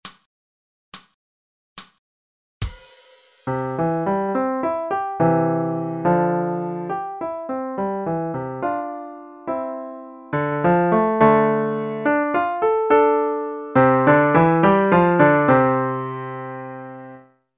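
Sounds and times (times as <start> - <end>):
pianoforte broken chord playing: 3.5 - 17.2.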